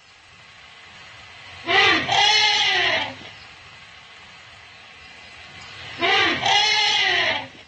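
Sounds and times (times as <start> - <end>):
elephants' brassy calls greeting a newborn: 1.6 - 3.2, 5.8 - 7.6.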